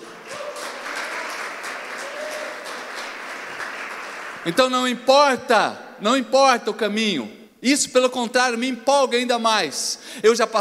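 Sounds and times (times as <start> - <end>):
audience applauding: 0.0 - 4.6
speech: 4.4 - 10.5.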